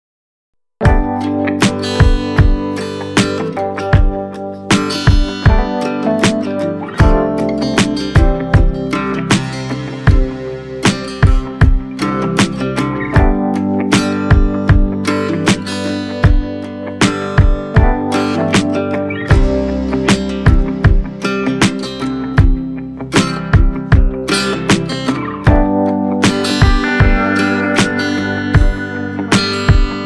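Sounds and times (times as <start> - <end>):
Bhakti instrumental ringtone: 0.9 - 30.0.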